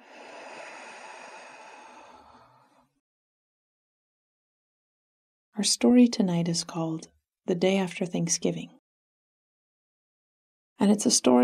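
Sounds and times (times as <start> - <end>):
slow exhale during a guided breathing exercise: 0.0 - 3.0
speech: 5.6 - 8.8, 10.8 - 11.4.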